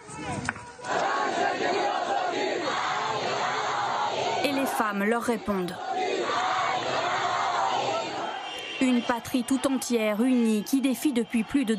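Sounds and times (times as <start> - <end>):
men chanting protest slogan in crowd: 0.9 - 8.4
speech: 4.8 - 5.9, 9.0 - 11.7.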